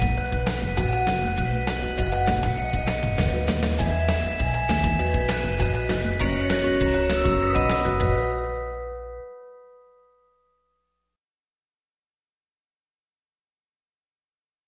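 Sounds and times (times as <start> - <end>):
Christmas song: 0.0 - 10.4.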